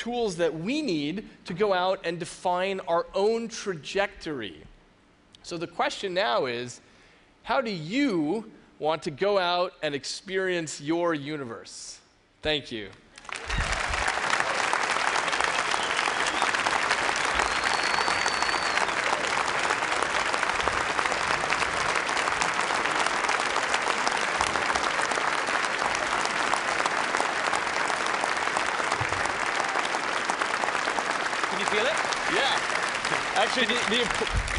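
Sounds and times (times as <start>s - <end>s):
speech: 0.0s - 4.7s, 5.4s - 13.5s, 33.6s - 34.5s
applause from a large audience: 13.2s - 34.5s.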